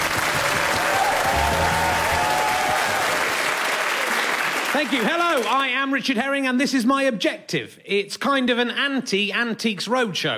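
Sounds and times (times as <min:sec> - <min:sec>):
audience applause welcoming the host: 0:00.0 - 0:05.5
speech: 0:04.8 - 0:10.3.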